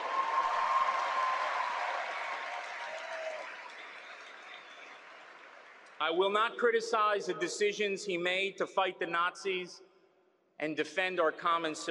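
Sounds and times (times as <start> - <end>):
large audience applause during speech: 0.0 - 6.0
speech: 6.0 - 9.9, 10.6 - 11.8.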